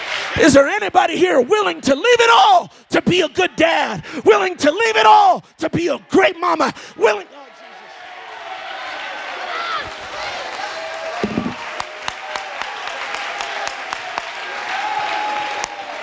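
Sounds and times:
audience clapping: 0:00.0 - 0:00.7, 0:07.4 - 0:16.0
speech: 0:00.4 - 0:07.4.

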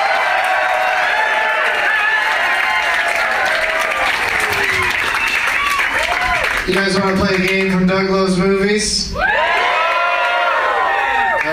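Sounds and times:
audience cheering and whooping: 0:00.0 - 0:06.6, 0:09.2 - 0:11.5
speech: 0:06.7 - 0:09.3.

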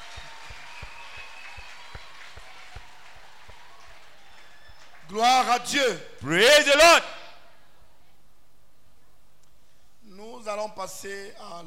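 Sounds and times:
audience clapping hands: 0:00.0 - 0:05.8
speech: 0:05.1 - 0:07.1, 0:10.6 - 0:11.6.

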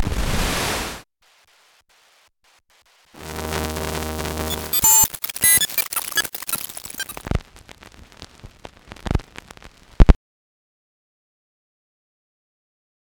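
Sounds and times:
hissing static burst from tuning devices: 0:00.1 - 0:10.2
buzzing hum: 0:03.2 - 0:09.9
crackling clicks and pops: 0:03.2 - 0:10.2.

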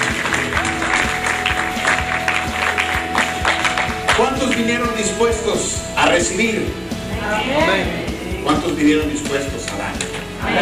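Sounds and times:
audience applause: 0:00.0 - 0:04.6
speech: 0:04.5 - 0:10.6.

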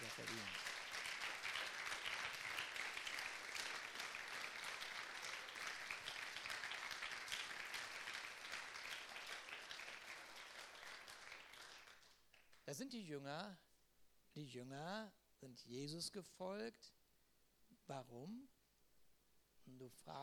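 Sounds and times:
audience applause: 0:00.0 - 0:12.6
speech: 0:12.7 - 0:13.7, 0:14.4 - 0:17.0, 0:17.9 - 0:18.5, 0:19.7 - 0:20.2.

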